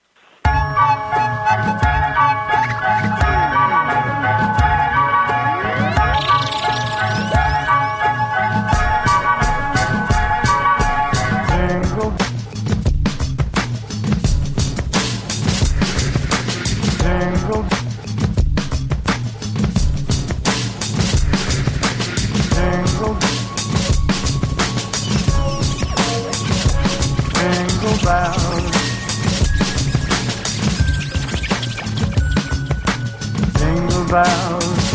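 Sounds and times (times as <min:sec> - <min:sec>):
bright jingling bells: 0:00.5 - 0:10.6, 0:22.8 - 0:33.4
upbeat bouncy holiday tune: 0:00.5 - 0:34.9.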